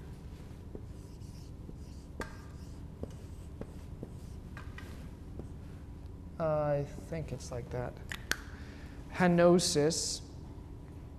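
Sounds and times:
handwriting the Greek word henosis: 0:00.9 - 0:04.4
speech: 0:06.4 - 0:08.2, 0:09.2 - 0:10.3.

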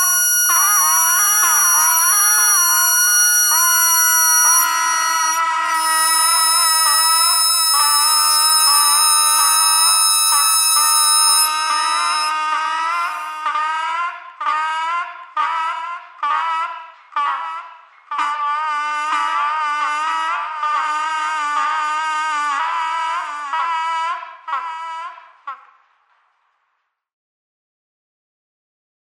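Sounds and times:
bagpipe: 0:00.0 - 0:25.6.

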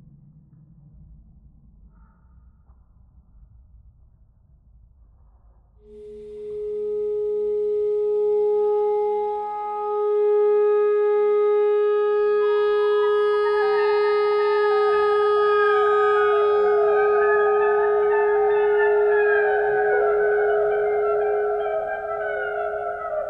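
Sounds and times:
clarinet notes: 0:05.9 - 0:23.2.

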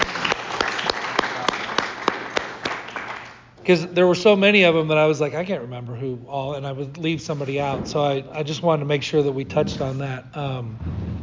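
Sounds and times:
audience applause: 0:00.0 - 0:03.5
speech: 0:03.7 - 0:11.1.

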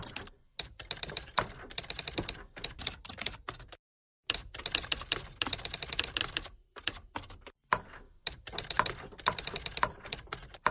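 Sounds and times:
typewriter thread pentatonic melody: 0:00.0 - 0:03.7, 0:04.3 - 0:06.4, 0:08.3 - 0:10.6.

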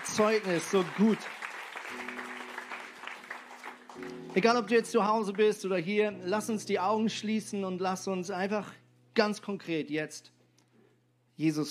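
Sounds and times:
audience applause: 0:00.0 - 0:04.6
speech: 0:00.2 - 0:01.4, 0:04.0 - 0:10.4, 0:11.4 - 0:11.6.

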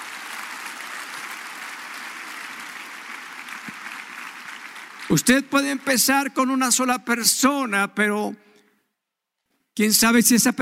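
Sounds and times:
audience applause: 0:00.0 - 0:06.1
speech: 0:05.1 - 0:08.5, 0:09.8 - 0:10.6.

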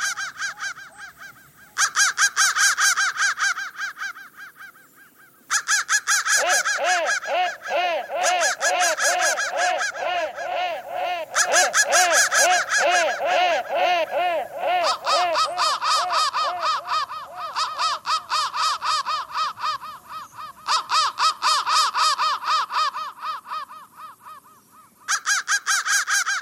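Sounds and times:
crow cawing: 0:00.0 - 0:26.4
laughter: 0:06.4 - 0:18.0.

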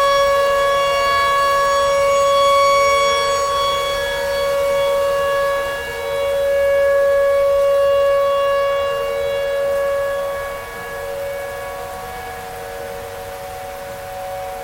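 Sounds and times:
tornado siren: 0:00.0 - 0:14.6.

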